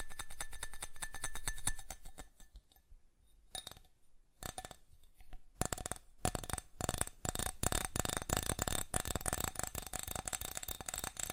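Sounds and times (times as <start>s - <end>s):
fast tapping on a hard surface: 0.0s - 2.3s, 5.6s - 11.3s.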